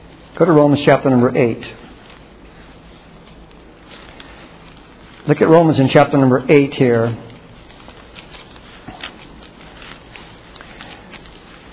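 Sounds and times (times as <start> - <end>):
speech: 0.4 - 1.8, 5.3 - 7.3
Bible pages turning and rustling: 1.8 - 6.0, 7.0 - 11.7.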